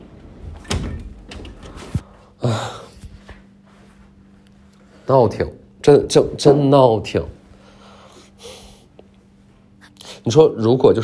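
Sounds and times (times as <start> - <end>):
door closing: 0.4 - 2.0
speech: 5.1 - 7.4, 10.3 - 11.0.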